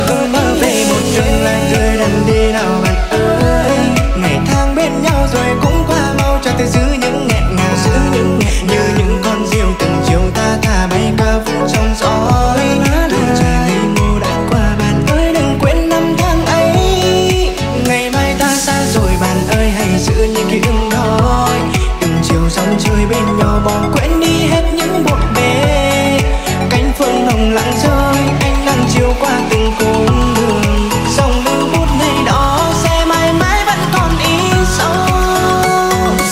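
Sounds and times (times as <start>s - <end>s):
remix ringtone: 0.0s - 36.3s.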